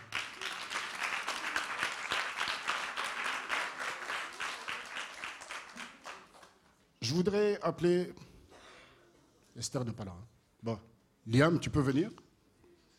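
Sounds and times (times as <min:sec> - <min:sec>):
group of people applauding a child: 0:00.0 - 0:06.8
speech: 0:07.1 - 0:08.2, 0:09.6 - 0:12.2.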